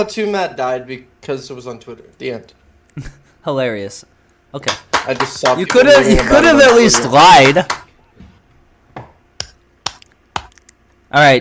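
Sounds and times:
speech: 0.0 - 7.8, 11.1 - 11.3
slow hand claps: 4.6 - 7.9.

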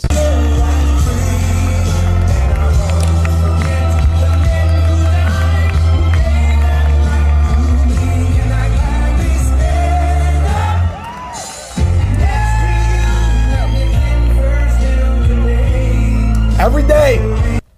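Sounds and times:
President Trump's rally crowd in the Midwest: 0.0 - 17.6.

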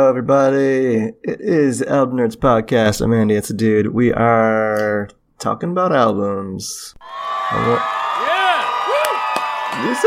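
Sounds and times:
speech: 0.0 - 8.4, 9.8 - 10.0
crowd whoops: 7.0 - 10.0
studio audience cheering sound effect: 7.0 - 10.0.

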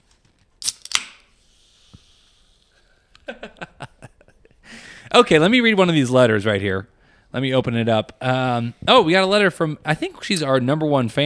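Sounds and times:
bottle of sparkling wine opening: 0.6 - 2.1
sparkling wine fizz hissing: 1.4 - 3.0
laughter: 3.2 - 4.7
speech: 5.2 - 11.2.

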